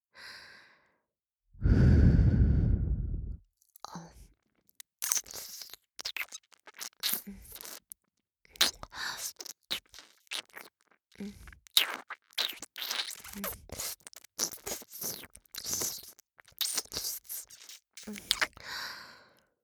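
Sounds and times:
long loud breathy sigh: 0:01.6 - 0:03.4
ear licking, wet licking and smacking mouth sounds: 0:04.8 - 0:18.6.

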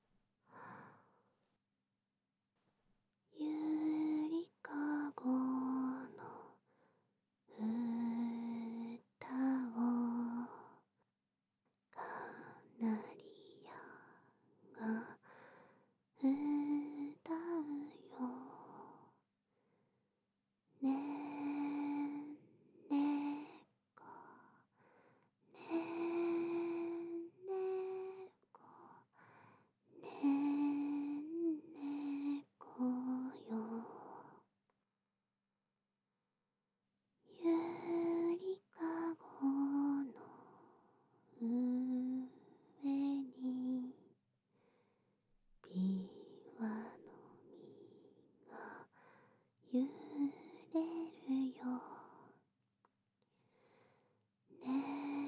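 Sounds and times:
lullaby: 0:03.3 - 0:06.9, 0:07.5 - 0:10.9, 0:11.9 - 0:19.2, 0:20.8 - 0:34.5, 0:37.3 - 0:44.2, 0:45.6 - 0:52.5, 0:54.5 - 0:55.2.

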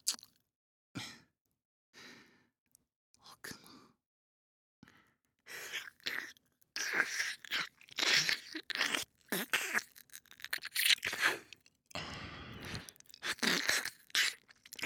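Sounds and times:
ear licking: 0:05.5 - 0:14.8.

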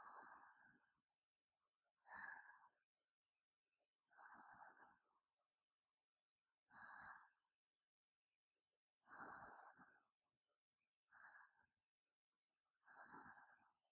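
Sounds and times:
sleep breathing ASMR: 0:00.0 - 0:00.8, 0:02.1 - 0:02.8, 0:04.1 - 0:05.0, 0:06.7 - 0:07.4, 0:09.0 - 0:10.0, 0:11.1 - 0:11.7, 0:12.8 - 0:13.8.

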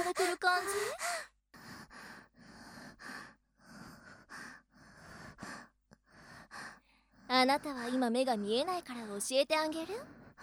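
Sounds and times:
breathing: 0:00.7 - 0:08.0, 0:10.0 - 0:10.4
speech: 0:07.4 - 0:10.2.

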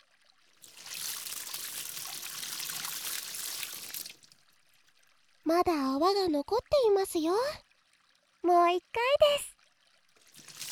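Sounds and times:
warm water poured to rinse off: 0:00.2 - 0:05.3, 0:10.0 - 0:10.7
speech: 0:05.5 - 0:07.6, 0:08.4 - 0:09.5.

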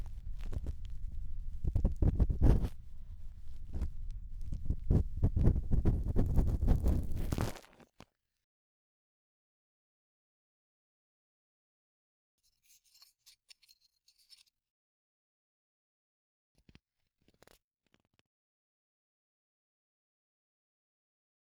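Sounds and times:
bamboo ear pick scraping deep inside right ear: 0:00.0 - 0:07.6.

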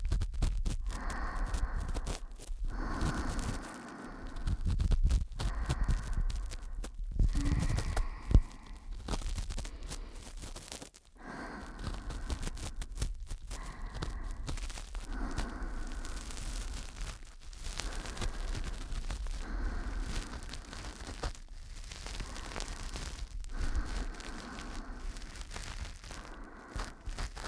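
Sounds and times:
ASMR ear cleaning in the left ear: 0:00.0 - 0:27.4.

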